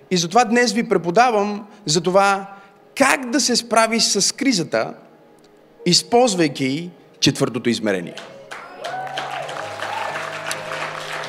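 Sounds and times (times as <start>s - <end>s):
speech: 0.1s - 5.1s, 5.8s - 8.3s
church congregation clapping during a sermon: 8.1s - 11.2s.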